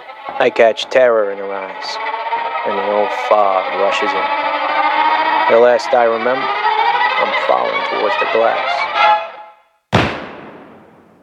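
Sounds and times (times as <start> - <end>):
speech: 0.3 - 4.8, 5.5 - 6.6, 7.2 - 9.2
gunshot: 9.9 - 11.2.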